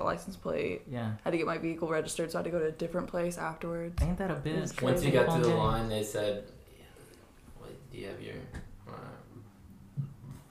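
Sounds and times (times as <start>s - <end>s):
speech: 0.0s - 6.6s, 7.9s - 9.1s
burp: 8.8s - 9.4s.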